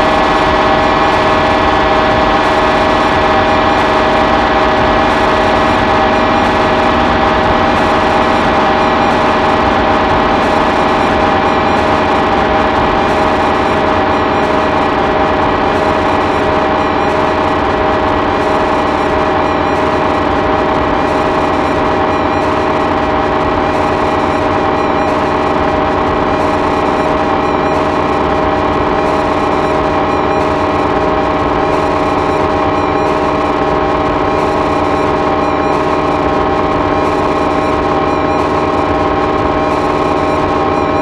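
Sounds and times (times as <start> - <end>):
sampler noise: 0.0 - 41.0.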